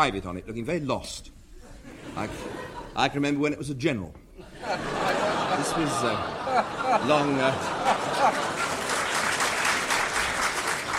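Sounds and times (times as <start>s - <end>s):
speech: 0.0s - 1.4s, 2.1s - 8.6s
audience laughing: 1.6s - 3.2s, 4.4s - 10.9s
live audience applause: 5.1s - 10.9s.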